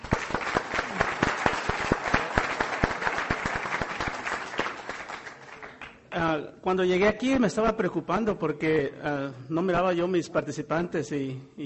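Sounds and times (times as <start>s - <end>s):
audience applause: 0.0s - 6.0s
speech: 6.7s - 11.6s.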